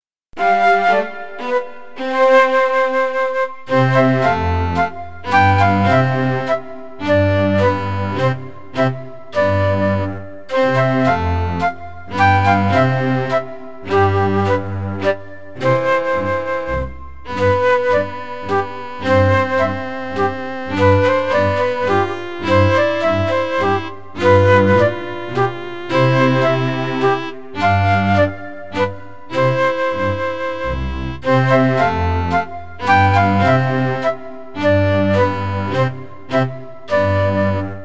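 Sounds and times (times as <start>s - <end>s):
minuet: 0.4s - 37.8s.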